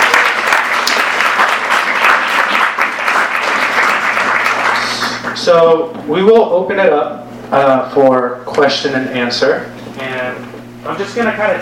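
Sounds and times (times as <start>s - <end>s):
audience applause: 0.0s - 5.4s
speech: 5.5s - 9.7s, 10.9s - 11.6s.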